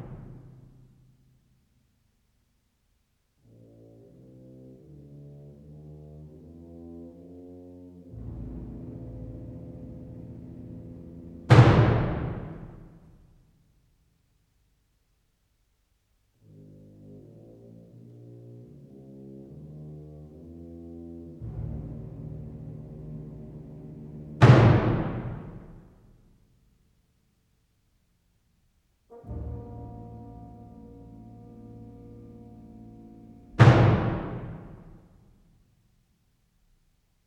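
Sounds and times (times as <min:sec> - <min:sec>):
symphony: 0:03.4 - 0:13.2, 0:16.4 - 0:25.9, 0:29.1 - 0:35.4.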